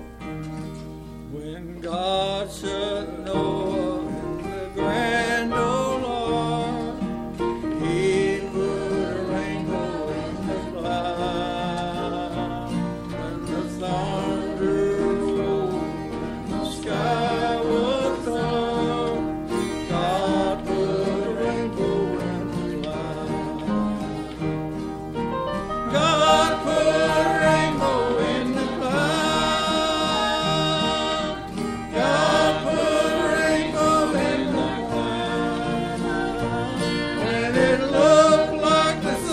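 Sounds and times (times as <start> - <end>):
choir singing: 2.0 - 39.3.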